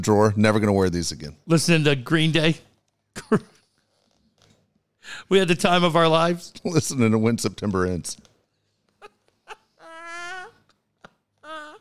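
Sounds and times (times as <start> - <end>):
speech: 0.0 - 3.5, 5.0 - 8.3
cat crying: 9.0 - 10.7, 11.4 - 11.7.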